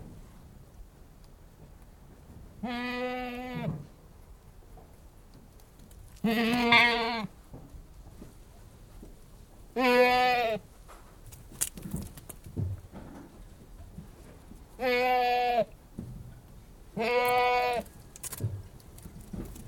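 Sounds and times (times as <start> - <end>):
Anglo-Nubian goat bleating outdoors: 2.6 - 3.7, 6.2 - 7.3, 9.8 - 10.6, 14.8 - 15.8, 17.0 - 17.9.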